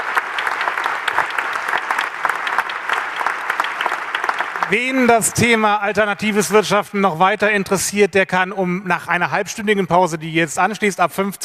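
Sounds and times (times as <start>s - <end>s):
audience applause: 0.0s - 6.2s
speech: 4.7s - 11.4s.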